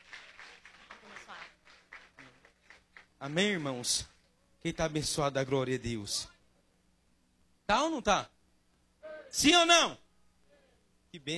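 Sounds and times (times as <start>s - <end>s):
audience clapping hands: 0.0s - 4.2s
speech: 3.2s - 6.3s, 7.7s - 8.4s, 9.3s - 10.0s, 11.1s - 11.3s.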